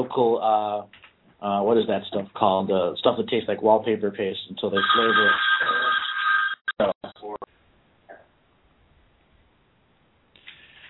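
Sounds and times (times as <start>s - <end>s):
speech: 0.0s - 5.9s
voice over telephone line: 4.8s - 6.0s, 6.8s - 7.5s
electronic phone ring: 4.8s - 6.8s.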